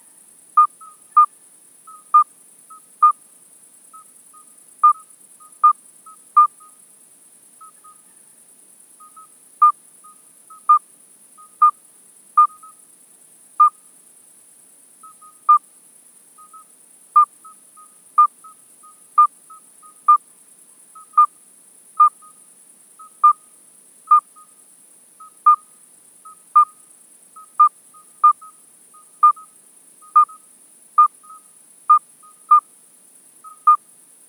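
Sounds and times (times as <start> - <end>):
midwife toad Alytes obstetricans calling: 0.0 - 3.2, 3.9 - 6.8, 7.6 - 8.2, 9.0 - 11.8, 12.4 - 12.8, 13.6 - 13.8, 15.0 - 15.7, 16.4 - 20.3, 20.9 - 21.4, 22.0 - 24.6, 25.2 - 32.7, 33.4 - 33.9.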